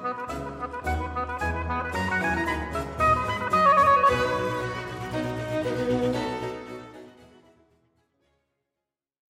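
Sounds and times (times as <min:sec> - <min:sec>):
second movement in F major: 0:00.5 - 0:07.8.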